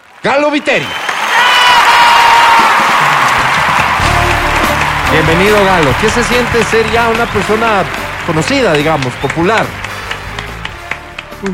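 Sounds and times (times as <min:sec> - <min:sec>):
crowd applause and cheering: 0:00.0 - 0:11.5
speech: 0:00.2 - 0:01.0, 0:05.1 - 0:09.8, 0:11.4 - 0:11.5.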